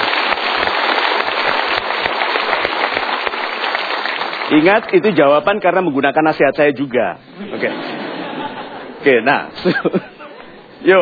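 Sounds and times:
audience applause at a live seminar: 0:00.0 - 0:05.0
speech: 0:04.5 - 0:08.0, 0:09.0 - 0:10.1, 0:10.8 - 0:11.0
laughter: 0:07.4 - 0:10.6.

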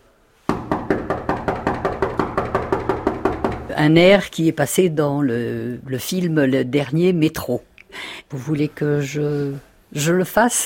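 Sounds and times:
knocking on a door: 0:00.5 - 0:03.8
speech: 0:03.8 - 0:10.6.

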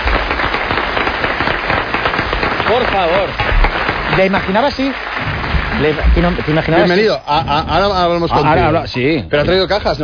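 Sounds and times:
audience applause welcoming a guest onto a show: 0:00.0 - 0:08.6
speech: 0:02.8 - 0:03.5, 0:04.2 - 0:10.0.

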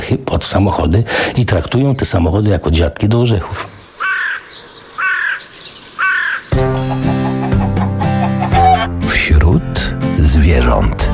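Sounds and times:
speech: 0:00.1 - 0:03.8, 0:10.5 - 0:11.1
hooded crow cawing: 0:03.9 - 0:09.0
music with sustained tones: 0:06.5 - 0:09.3.

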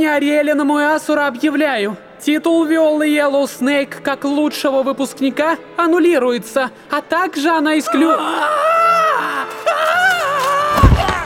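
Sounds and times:
speech: 0:00.0 - 0:08.8
woman's piercing high-pitched shriek: 0:07.9 - 0:11.2.

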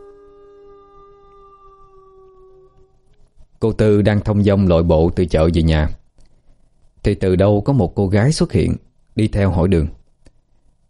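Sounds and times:
white dog on a rooftop howling at the moon: 0:00.0 - 0:03.2
speech: 0:03.6 - 0:06.0, 0:07.0 - 0:10.0.

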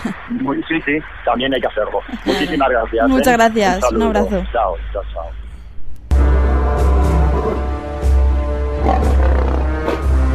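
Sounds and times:
laughter: 0:00.0 - 0:04.4
speech: 0:00.0 - 0:05.4
lion roaring: 0:06.3 - 0:07.9, 0:08.7 - 0:10.3.

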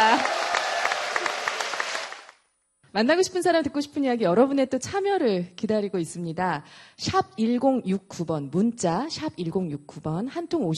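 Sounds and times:
studio audience applause: 0:00.0 - 0:02.4
speech: 0:02.9 - 0:10.7.

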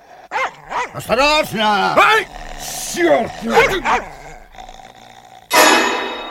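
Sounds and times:
dog growling at a stranger at the back of a cart: 0:00.0 - 0:06.2
dog barking at a stranger at the back of a cart: 0:00.3 - 0:02.2, 0:02.9 - 0:04.3
speech: 0:00.9 - 0:04.2.

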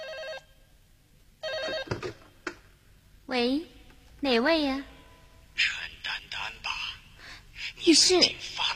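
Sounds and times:
telephone ringing: 0:00.0 - 0:00.5, 0:01.4 - 0:02.2
speech: 0:03.3 - 0:04.9, 0:05.6 - 0:05.8, 0:07.8 - 0:08.6.

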